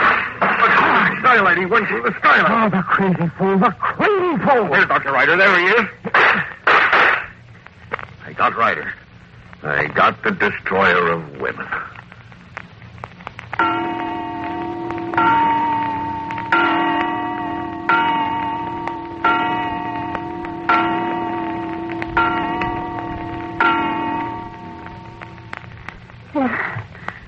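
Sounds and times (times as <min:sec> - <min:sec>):
laughter: 0:00.4 - 0:04.4, 0:05.8 - 0:07.3
speech: 0:01.3 - 0:06.0, 0:08.4 - 0:09.0, 0:09.6 - 0:11.9
clock bell striking eight o'clock: 0:13.6 - 0:25.7.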